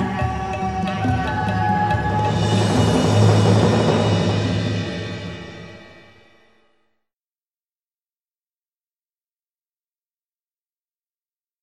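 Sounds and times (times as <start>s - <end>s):
instrumental music: 0.0s - 6.5s.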